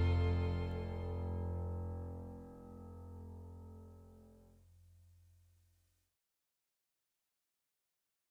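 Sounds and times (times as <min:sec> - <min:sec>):
D major scale: 0:00.0 - 0:01.7.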